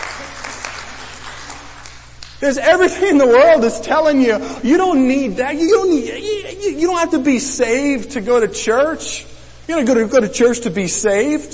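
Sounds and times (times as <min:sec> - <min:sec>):
church audience clapping: 0:00.0 - 0:02.4
speech: 0:02.4 - 0:11.5.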